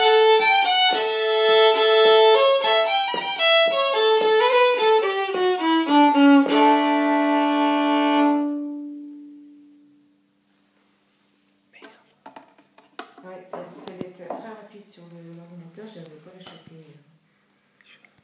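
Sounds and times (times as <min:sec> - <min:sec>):
slow violins: 0:00.0 - 0:10.0.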